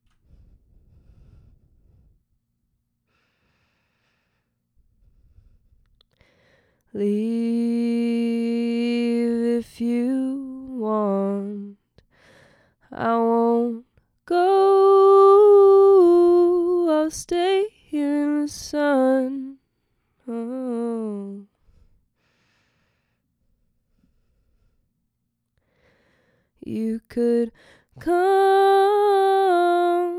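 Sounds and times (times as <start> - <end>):
vocals: 6.8 - 21.9, 26.5 - 30.1.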